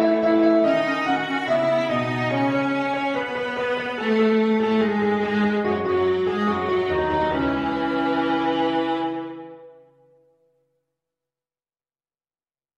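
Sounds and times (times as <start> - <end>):
viola: 0.0 - 9.9
clarinet: 0.0 - 10.1.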